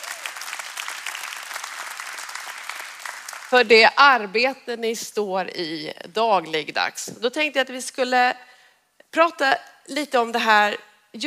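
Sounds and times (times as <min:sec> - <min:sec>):
audience applauding: 0:00.0 - 0:03.6
speech: 0:03.5 - 0:08.5, 0:09.1 - 0:11.2.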